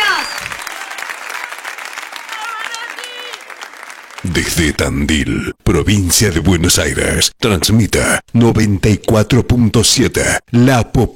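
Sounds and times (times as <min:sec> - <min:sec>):
applause: 0:00.0 - 0:04.6
speech: 0:04.2 - 0:11.1.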